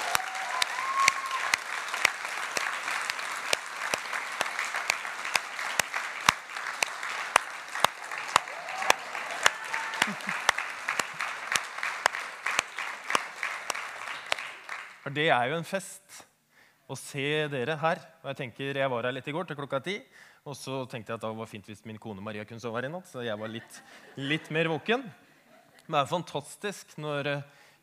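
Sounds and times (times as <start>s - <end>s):
audience applause: 0.0s - 15.0s
laughter: 9.4s - 11.4s, 23.3s - 25.9s
speech: 15.1s - 16.3s, 16.9s - 25.2s, 25.9s - 27.8s.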